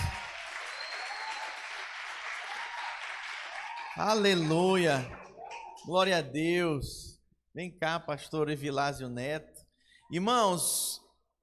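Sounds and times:
applause: 0.0s - 5.9s
speech: 4.0s - 5.2s, 5.8s - 9.5s, 10.1s - 11.0s.

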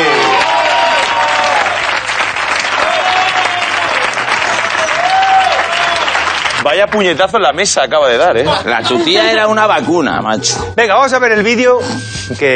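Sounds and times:
audience applause: 0.0s - 6.9s
speech: 6.7s - 12.5s
laughter: 8.2s - 9.8s
musical tones: 8.9s - 12.5s.

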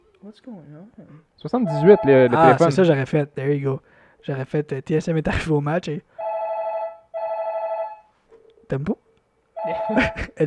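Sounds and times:
speech: 0.2s - 6.2s, 8.7s - 9.0s, 9.7s - 10.4s
telephone ringing with buzzy electronic tone: 1.7s - 2.7s, 6.2s - 8.1s, 9.6s - 10.3s
laughter: 9.6s - 10.4s.

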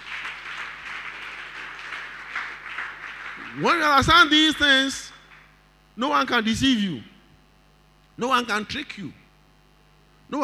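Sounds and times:
audience clapping hands: 0.0s - 4.0s, 5.1s - 5.6s
speech: 3.6s - 5.1s, 6.0s - 7.1s, 8.2s - 9.2s.

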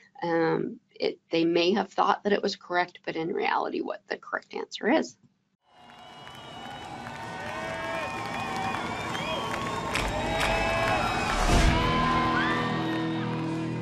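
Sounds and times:
speech: 0.2s - 5.3s
crowd cheering and applauding: 5.7s - 13.8s
high whoops and whistles: 5.8s - 13.6s.

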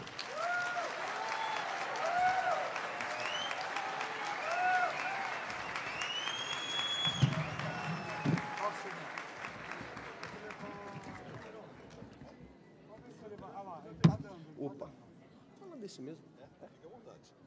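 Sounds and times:
sustained applause from a large audience welcoming a speaker: 0.0s - 12.0s
whoops and whistles: 3.0s - 3.8s, 4.4s - 8.6s.

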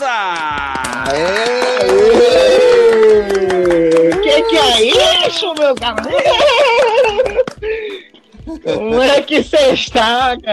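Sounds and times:
laughter: 0.0s - 9.8s
audience applause for a guest: 0.2s - 7.6s
speech: 4.8s - 6.8s, 8.7s - 10.5s.

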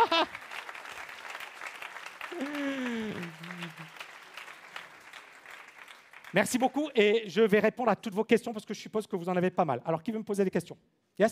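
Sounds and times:
audience applause: 0.0s - 6.9s
speech: 6.3s - 11.3s.

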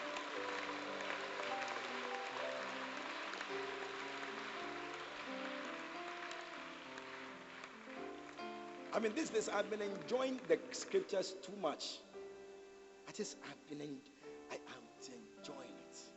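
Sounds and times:
audience clapping: 0.0s - 11.3s
speech: 9.0s - 12.1s, 13.2s - 14.1s.

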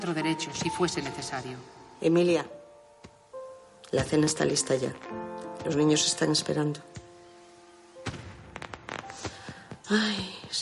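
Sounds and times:
speech: 0.0s - 2.6s, 3.9s - 7.0s, 9.9s - 10.5s
fireworks in the street: 8.0s - 10.5s.

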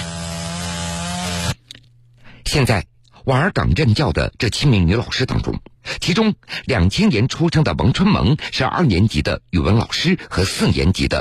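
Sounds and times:
electric saw cutting wood: 0.0s - 1.6s
speech: 2.5s - 11.1s.

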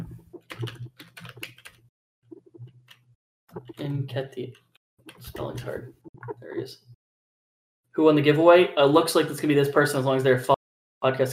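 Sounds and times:
fingers typing on a computer keyboard: 0.4s - 1.8s
speech: 3.9s - 4.6s, 5.3s - 6.9s, 8.0s - 11.3s.

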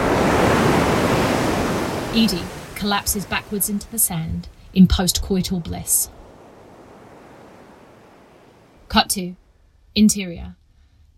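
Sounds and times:
ocean surf crashing on shore: 0.0s - 9.0s
speech: 2.1s - 6.2s, 8.9s - 9.4s, 10.0s - 10.6s.

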